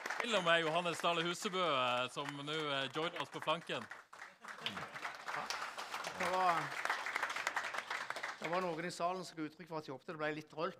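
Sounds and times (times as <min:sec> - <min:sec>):
audience applause: 0:00.0 - 0:08.8
speech: 0:00.2 - 0:04.9, 0:06.2 - 0:06.9, 0:08.4 - 0:10.7.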